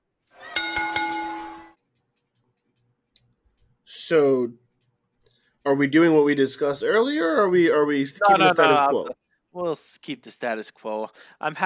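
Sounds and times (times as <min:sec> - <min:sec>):
bell ringing: 0:00.5 - 0:01.7
speech: 0:04.1 - 0:04.6, 0:05.7 - 0:11.6.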